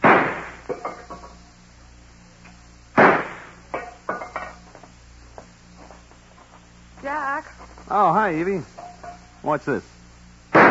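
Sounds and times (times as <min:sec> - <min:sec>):
German Luger pistol shots: 0:00.0 - 0:00.6, 0:03.0 - 0:03.6
speech: 0:07.4 - 0:08.7, 0:09.4 - 0:09.9.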